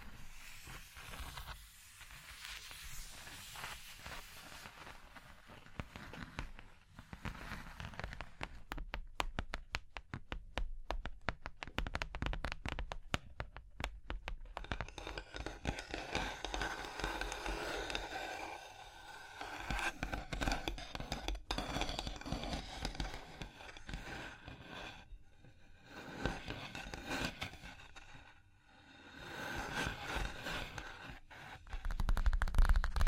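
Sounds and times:
fingers scratching and tracing across a surface: 0.0 - 10.3, 11.0 - 33.0
rapid sharp finger taps: 8.2 - 18.0.

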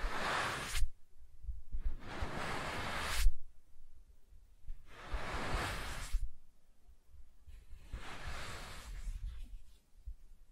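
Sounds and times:
soft tracing on smooth and rough surfaces: 0.0 - 1.0, 1.7 - 3.5, 4.7 - 6.4, 7.4 - 10.3.

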